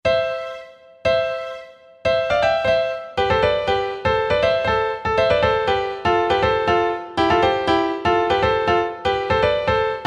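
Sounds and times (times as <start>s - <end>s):
grand piano: 0.0s - 10.0s.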